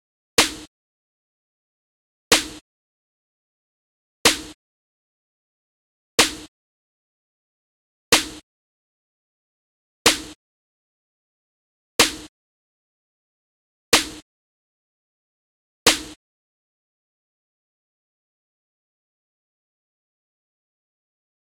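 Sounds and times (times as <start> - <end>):
snare noise: 0.4 - 0.7, 2.3 - 2.6, 4.3 - 4.6, 6.2 - 6.5, 8.1 - 8.4, 10.1 - 10.4, 12.0 - 12.3, 14.0 - 14.2, 15.9 - 16.2.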